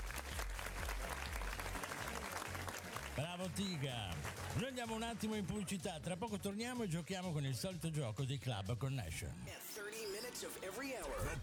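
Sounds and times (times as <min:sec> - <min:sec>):
applause: 0:00.0 - 0:05.8
speech: 0:03.2 - 0:11.4.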